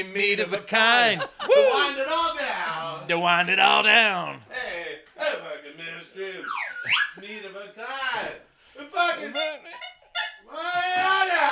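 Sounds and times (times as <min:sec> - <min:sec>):
laughter: 0:00.0 - 0:03.9, 0:08.8 - 0:10.9
speech: 0:00.0 - 0:09.9
slide whistle: 0:06.4 - 0:07.2.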